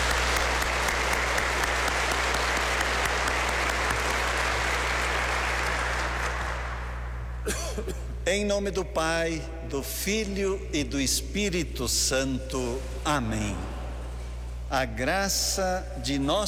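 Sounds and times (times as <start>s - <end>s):
applause: 0.0s - 7.3s
speech: 7.5s - 13.7s, 14.7s - 16.4s.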